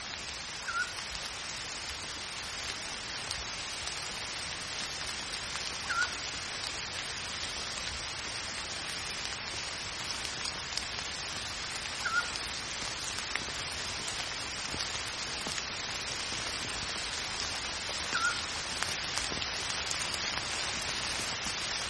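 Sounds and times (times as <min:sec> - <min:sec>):
steady rain hiss: 0:00.0 - 0:21.8
pygmy owl whistled calls: 0:00.6 - 0:00.9, 0:05.9 - 0:06.2, 0:12.0 - 0:12.3, 0:18.1 - 0:18.5.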